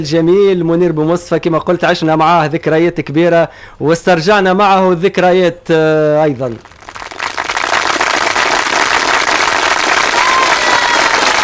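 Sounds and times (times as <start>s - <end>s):
speech: 0.0s - 6.8s
sustained audience applause: 6.6s - 11.4s.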